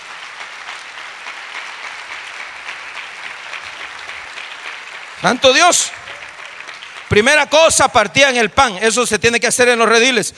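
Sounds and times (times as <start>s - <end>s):
audience applause: 0.0s - 7.9s
speech: 5.2s - 6.0s, 7.1s - 10.3s.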